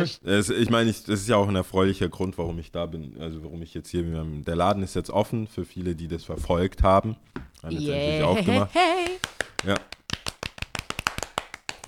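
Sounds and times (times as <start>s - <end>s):
speech: 0.0s - 9.9s
clapping: 8.9s - 11.8s.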